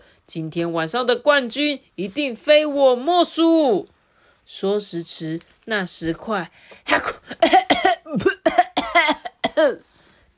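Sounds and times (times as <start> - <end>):
speech: 0.3 - 8.5, 9.6 - 10.3
repeated coughing: 6.8 - 9.8.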